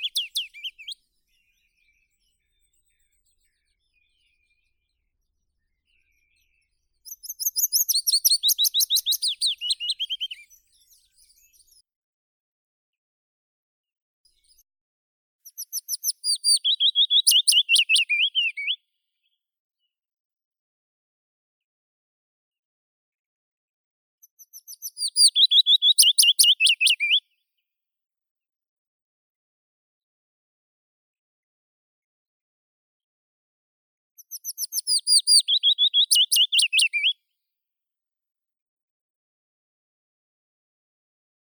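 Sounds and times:
Phylloscopus trochilus willow warbler singing: 7.1s - 10.4s, 15.5s - 18.8s, 24.4s - 27.2s, 34.3s - 37.1s.

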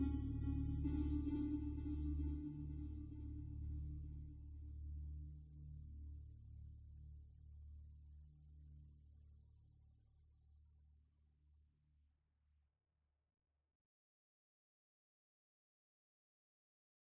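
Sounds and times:
ambient music: 0.0s - 6.3s.

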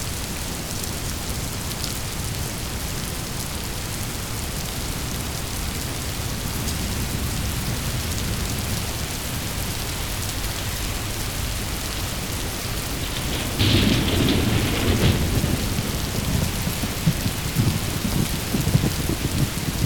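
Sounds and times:
rain: 0.0s - 19.8s
thunder rolling: 6.1s - 19.8s.

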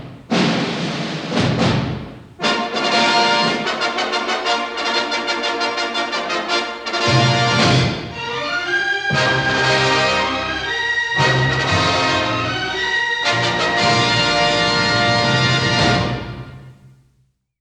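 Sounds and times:
symphony orchestra fanfare: 0.3s - 17.0s.

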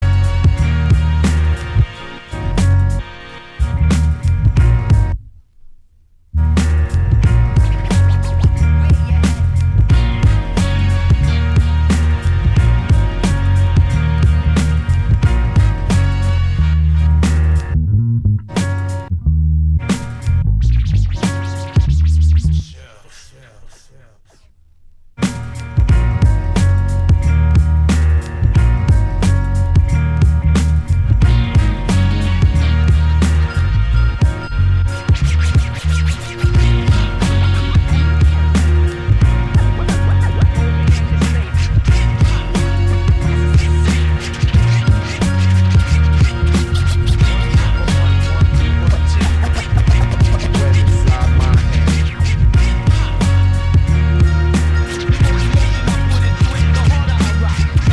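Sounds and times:
hip hop instrumental: 0.0s - 19.1s, 19.8s - 57.9s.

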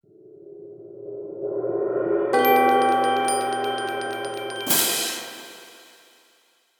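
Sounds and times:
percussion epiphany hit: 2.4s - 6.3s.

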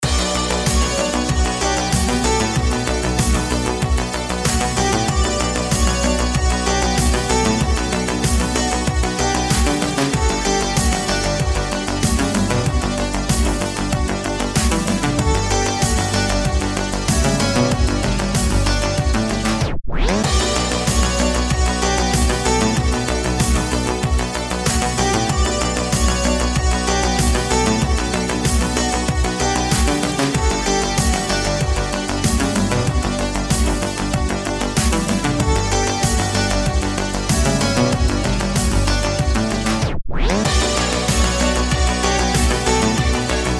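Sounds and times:
dark synthwave music: 0.0s - 43.5s.

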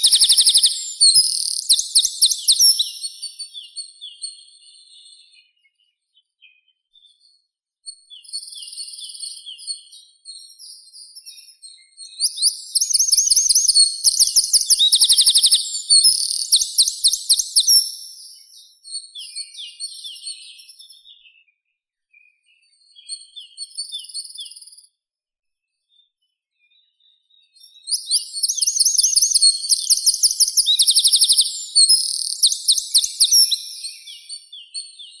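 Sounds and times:
wren Troglodytes troglodytes singing: 0.0s - 3.5s, 12.1s - 18.6s, 27.8s - 35.1s.

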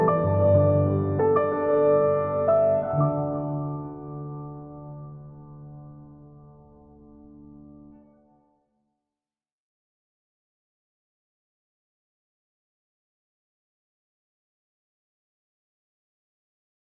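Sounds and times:
piano instrumental: 0.0s - 8.4s.

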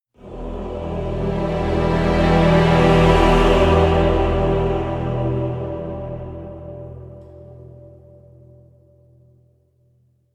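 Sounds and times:
epic building music in E minor: 0.2s - 8.4s.

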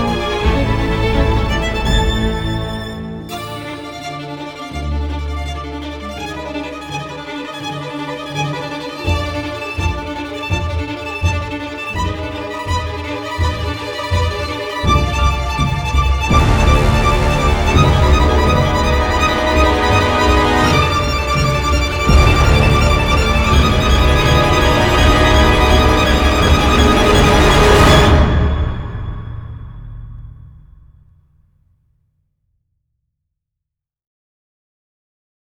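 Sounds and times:
solo violin nocturne: 0.0s - 28.4s.

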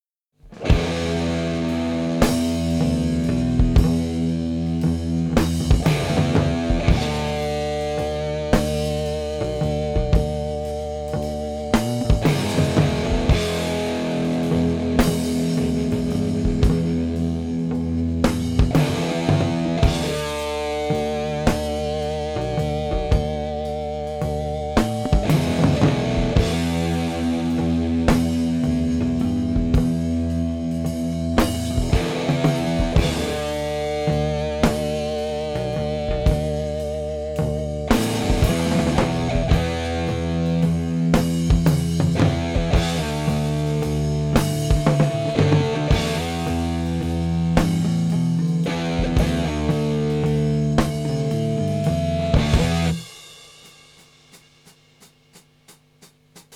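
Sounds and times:
instrumental music: 0.5s - 56.5s.

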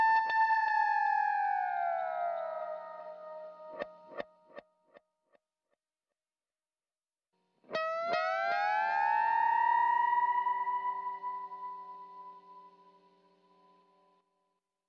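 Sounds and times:
guitar: 0.0s - 4.6s, 7.6s - 14.2s.

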